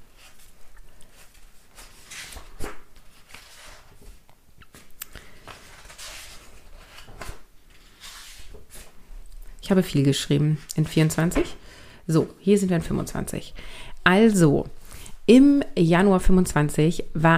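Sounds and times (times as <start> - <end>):
pages of a 2025 planner being leafed through: 0.1 - 9.0
speech: 9.7 - 17.3.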